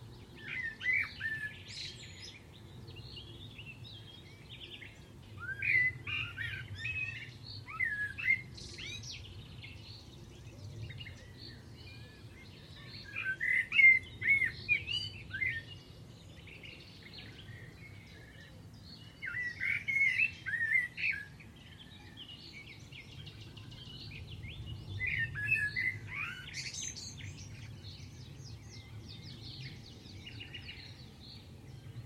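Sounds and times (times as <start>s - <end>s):
birds chirping: 0.0s - 32.0s
low background noise: 0.0s - 32.0s.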